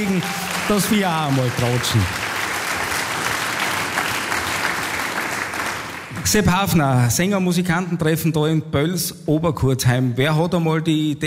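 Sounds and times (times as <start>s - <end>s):
speech: 0.0s - 2.2s, 6.2s - 11.2s
audience applause: 0.0s - 6.4s.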